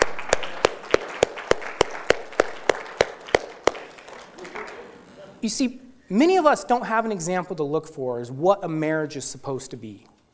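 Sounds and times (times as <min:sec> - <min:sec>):
audience applause: 0:00.0 - 0:05.1
speech: 0:05.4 - 0:10.1.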